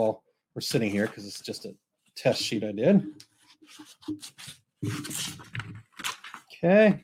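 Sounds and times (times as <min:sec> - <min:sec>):
speech: 0:00.0 - 0:07.0
scissors cutting paper: 0:03.7 - 0:06.3.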